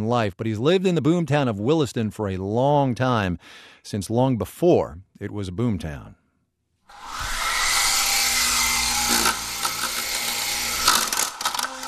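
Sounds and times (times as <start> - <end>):
speech: 0.0 - 6.2
remote-controlled helicopter motor: 6.9 - 11.8.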